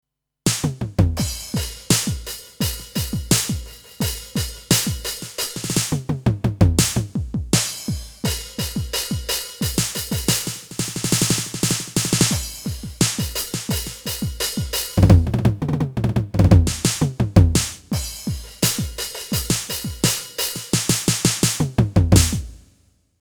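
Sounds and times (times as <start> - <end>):
1980s drum kit on Alesis DM Dock: 0.5 - 22.8.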